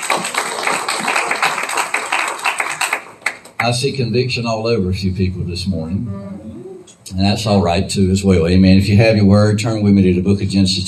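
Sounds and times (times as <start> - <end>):
audience clapping hands: 0.0 - 3.8
speech: 3.6 - 10.8.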